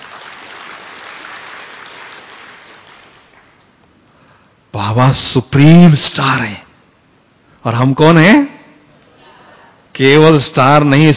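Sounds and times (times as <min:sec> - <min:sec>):
audience applause: 0:00.0 - 0:03.6
speech: 0:04.8 - 0:06.6, 0:07.6 - 0:08.5, 0:10.0 - 0:11.1.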